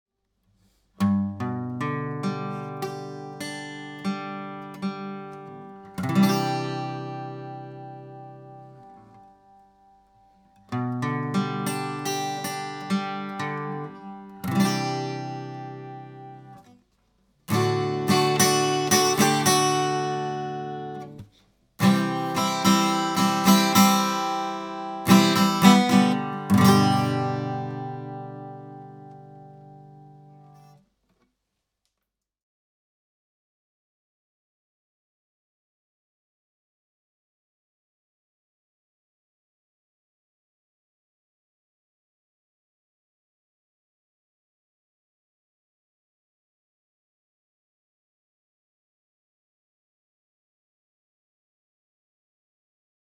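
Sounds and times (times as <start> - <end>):
guitar: 1.0 - 30.8.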